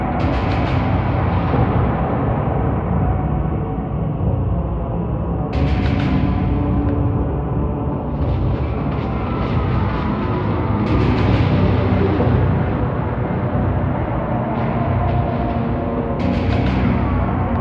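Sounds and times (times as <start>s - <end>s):
ambient game music: 0.0s - 17.5s.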